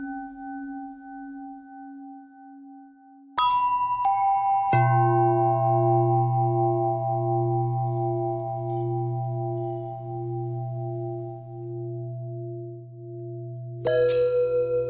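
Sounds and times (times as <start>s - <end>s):
long pentatonic bell tones: 3.4s - 14.8s.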